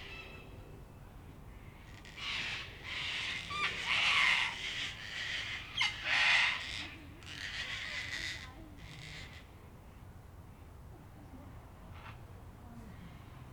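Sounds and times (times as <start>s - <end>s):
faint bird calls: 0.0s - 9.7s
sulphur-crested cockatoos screeching: 2.0s - 9.4s.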